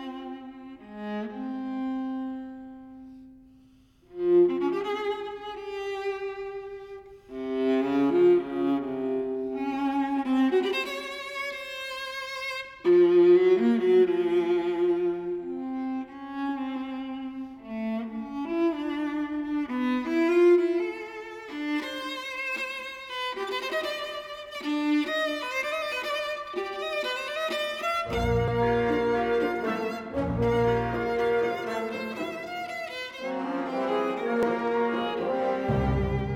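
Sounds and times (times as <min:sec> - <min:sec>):
viola concerto: 0:00.0 - 0:03.4, 0:04.1 - 0:36.3.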